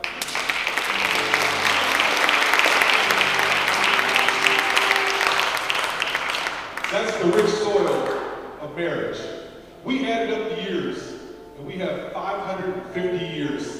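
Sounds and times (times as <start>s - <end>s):
audience hand clapping: 0.0s - 8.4s
speech: 7.2s - 13.7s.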